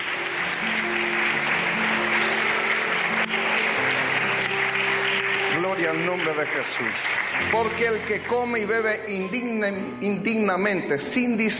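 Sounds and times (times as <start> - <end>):
audience applauding: 0.0 - 9.0
speech: 5.8 - 11.5.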